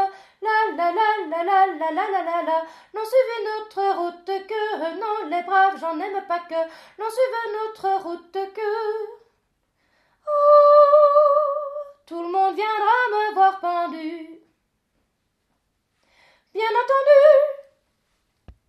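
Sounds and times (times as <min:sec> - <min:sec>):
soprano singing: 0:00.0 - 0:09.2, 0:10.3 - 0:14.5, 0:16.6 - 0:17.8.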